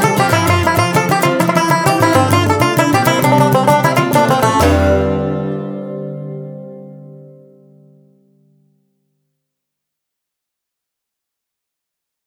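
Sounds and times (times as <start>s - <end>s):
jig tune: 0.0s - 7.1s.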